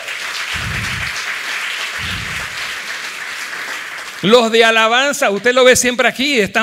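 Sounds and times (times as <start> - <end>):
audience applause: 0.0 - 4.5
speech: 4.2 - 6.6.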